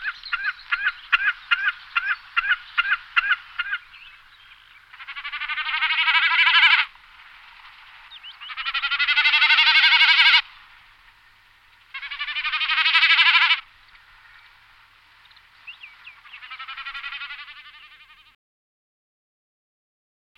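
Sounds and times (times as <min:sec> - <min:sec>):
common snipe calling with rasping note and dry ticking: 0:00.0 - 0:06.9, 0:08.0 - 0:10.4, 0:11.2 - 0:14.6, 0:15.2 - 0:18.4.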